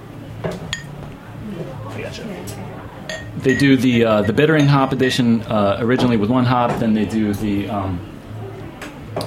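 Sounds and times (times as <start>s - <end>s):
faint murmur: 0.0s - 3.6s, 6.7s - 9.2s
beer glasses clinking: 0.7s - 1.0s, 3.1s - 5.3s
speech: 2.0s - 8.1s.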